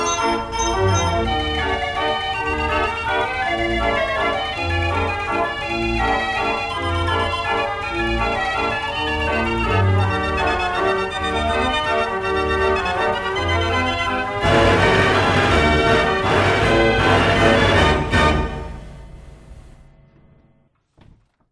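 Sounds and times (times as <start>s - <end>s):
carillon: 0.0s - 2.2s
draaiorgel barrel organ: 0.0s - 20.5s.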